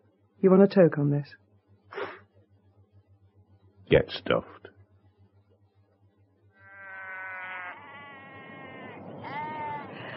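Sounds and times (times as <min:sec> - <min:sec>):
speech: 0:00.4 - 0:01.4, 0:03.9 - 0:04.7
lambs bleating: 0:06.6 - 0:10.1.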